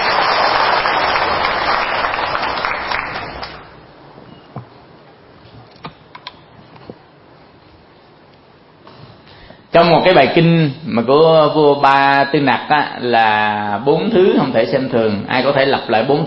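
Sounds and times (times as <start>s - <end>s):
audience applause: 0.0s - 3.7s
speech: 10.0s - 16.2s.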